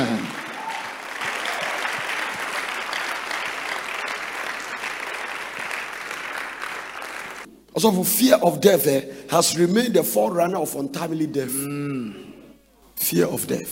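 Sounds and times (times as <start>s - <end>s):
congregation applauding at a church service: 0.0s - 7.5s
speech: 7.8s - 12.3s, 13.0s - 13.7s.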